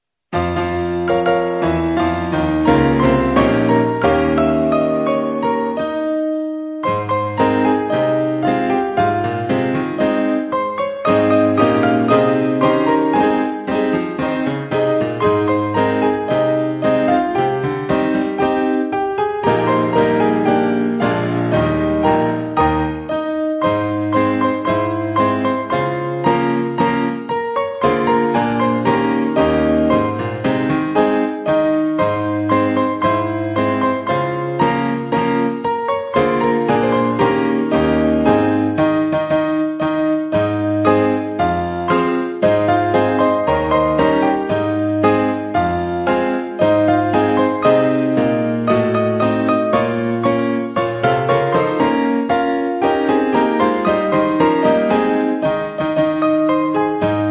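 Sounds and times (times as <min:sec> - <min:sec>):
Aeolian piano roll: 0:00.0 - 0:57.2.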